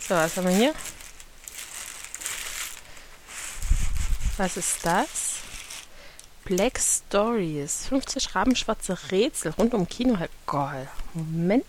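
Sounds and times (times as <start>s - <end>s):
paper packet being unwrapped: 0.0s - 5.9s
speech: 0.1s - 1.0s, 4.4s - 5.3s, 6.5s - 11.6s.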